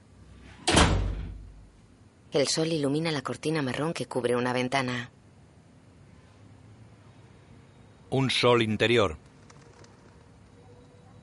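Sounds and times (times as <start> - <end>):
door shutting: 0.5 - 1.6
speech: 2.3 - 5.2, 8.1 - 9.3.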